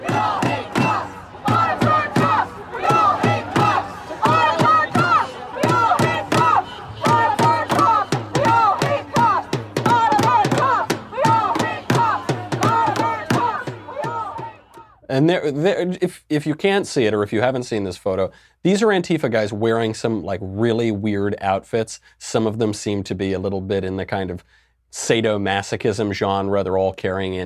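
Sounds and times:
sharp percussive beats: 0.0 - 14.8
protest crowd chanting in unison: 0.0 - 15.0
speech: 15.2 - 27.4.

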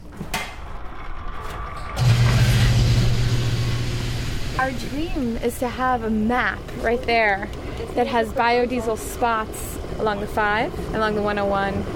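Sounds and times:
fuel pump pumping biodiesel into a vehicle tank: 2.0 - 6.6
speech: 4.6 - 11.9.

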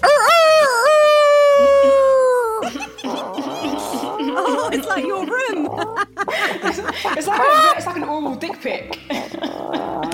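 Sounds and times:
person imitating a cockerel crowing: 0.0 - 6.1
laughter: 1.4 - 10.1.

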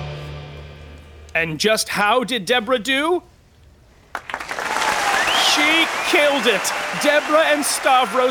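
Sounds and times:
speech: 1.4 - 3.3, 5.6 - 8.2
crowd applause: 4.1 - 8.2.

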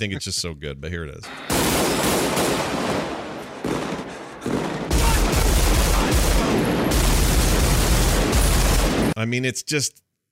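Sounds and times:
speech: 0.0 - 2.2, 9.2 - 10.0
nonstop gunfire from a film scene: 1.5 - 9.2.

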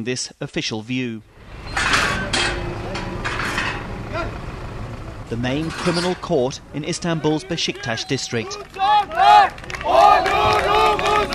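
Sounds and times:
speech: 0.0 - 1.9, 5.3 - 11.3
crowd noise: 1.4 - 11.3
supporters cheering outside the main criminal court in Istanbul's Beşiktaş district: 7.0 - 11.3.

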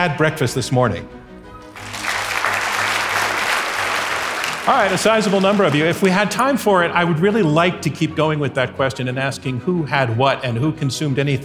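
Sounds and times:
speech: 0.0 - 1.2, 4.7 - 11.4
audience applause: 1.6 - 6.2.

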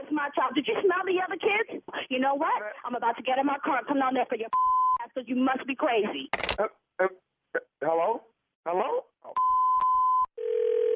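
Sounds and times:
speech: 0.2 - 9.1
sharp clicks: 6.3 - 6.6
telephone dial tone after a hang-up: 9.8 - 10.9.

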